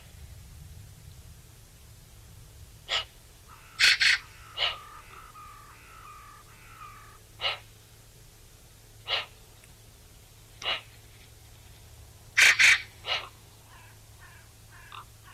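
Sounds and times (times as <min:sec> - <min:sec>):
Eurasian magpie Pica pica chattering: 0:02.9 - 0:07.6, 0:12.4 - 0:13.3.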